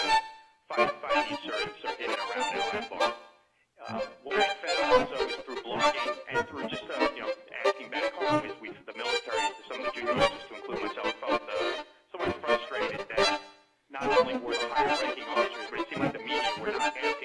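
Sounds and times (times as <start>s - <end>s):
strings: 0.0s - 17.2s
person talking on radio: 0.7s - 3.2s, 3.8s - 17.2s.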